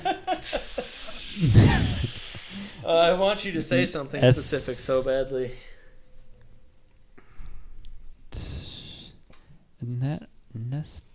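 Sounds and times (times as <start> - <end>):
speech: 0.4 - 0.7, 2.9 - 5.7
person making a breathy hissing sound with the mouth: 0.4 - 2.9, 8.3 - 9.2.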